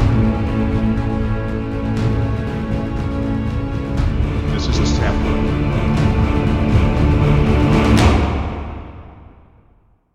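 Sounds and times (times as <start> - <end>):
dark epic power trailer music: 0.0 - 10.0.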